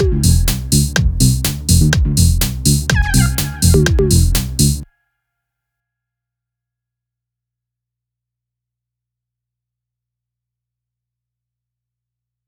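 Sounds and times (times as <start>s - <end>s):
quirky music: 0.0s - 4.8s.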